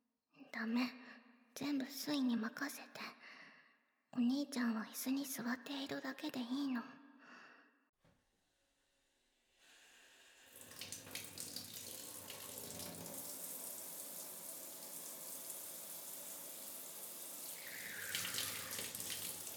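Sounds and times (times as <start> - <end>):
speech: 0.6 - 3.1, 4.1 - 7.0
hot water being poured over someone: 9.7 - 19.5.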